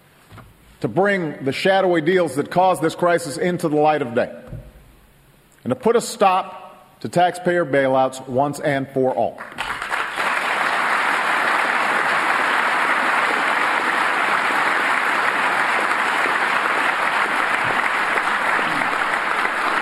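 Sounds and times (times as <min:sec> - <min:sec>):
speech: 0:00.8 - 0:04.5, 0:05.6 - 0:09.6
long audience applause: 0:09.5 - 0:19.8.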